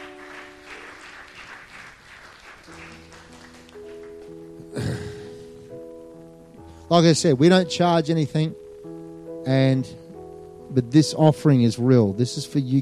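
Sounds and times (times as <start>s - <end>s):
audience applause: 0.0s - 5.1s
speech: 6.9s - 8.6s, 9.5s - 10.0s, 10.7s - 12.8s.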